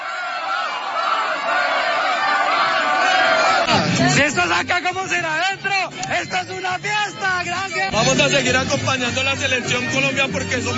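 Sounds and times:
celebrating football fans chanting and cheering: 0.0 - 4.8
speech: 3.9 - 10.7.

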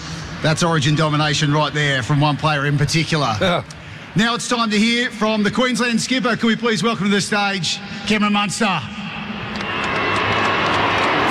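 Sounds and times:
speech: 0.4 - 9.1
stadium crowd booing: 8.9 - 11.2.

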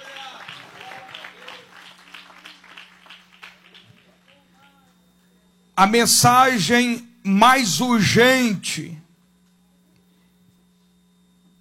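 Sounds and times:
audience applauding: 0.0 - 4.4
speech: 5.8 - 9.0.

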